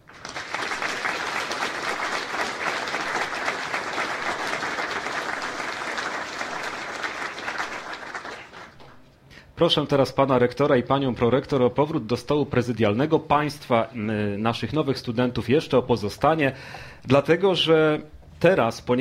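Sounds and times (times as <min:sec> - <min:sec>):
audience applause at university ceremony: 0:00.0 - 0:09.0
speech: 0:09.6 - 0:18.9.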